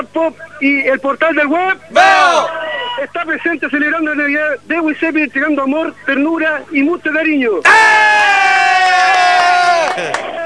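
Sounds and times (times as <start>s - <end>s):
speech: 0.0s - 8.0s
crowd shouting and cheering: 2.0s - 3.1s, 7.6s - 10.4s.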